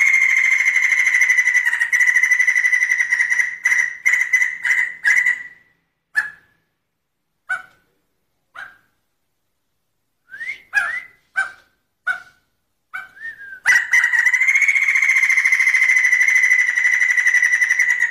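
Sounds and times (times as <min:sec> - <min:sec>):
bird song: 0:00.0 - 0:06.6, 0:10.7 - 0:18.0.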